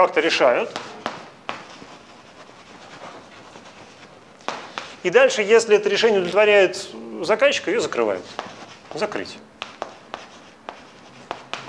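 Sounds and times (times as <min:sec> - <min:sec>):
speech: 0:00.0 - 0:00.9, 0:05.0 - 0:09.5
writing by hand: 0:00.0 - 0:05.1, 0:07.8 - 0:11.6.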